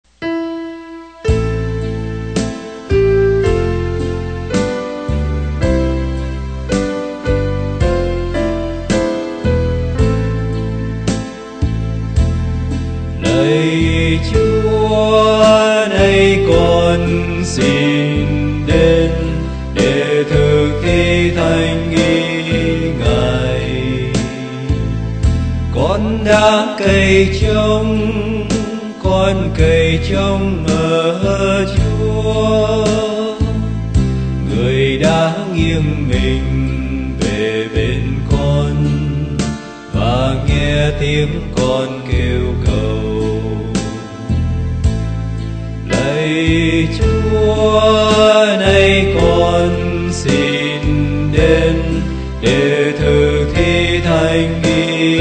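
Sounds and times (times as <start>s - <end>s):
bass: 1.0s - 55.1s.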